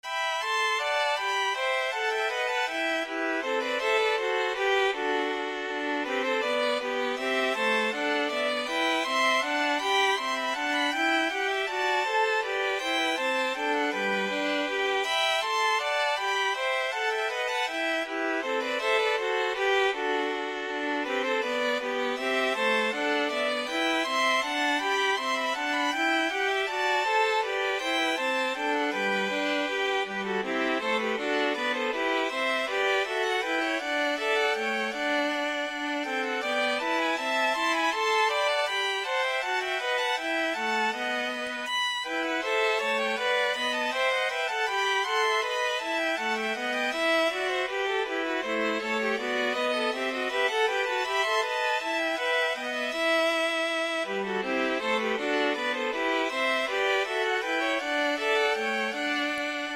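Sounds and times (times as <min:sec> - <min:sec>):
violin trio playing a bourree: 0:00.0 - 0:59.7.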